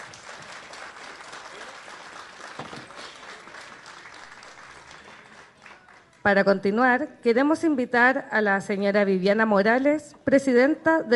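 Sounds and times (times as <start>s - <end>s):
audience applause: 0.0s - 6.2s
speech: 6.2s - 11.1s.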